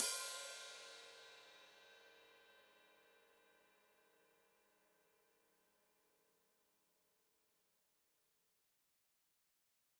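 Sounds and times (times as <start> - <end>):
open hi-hat played with foot: 0.0 - 1.5.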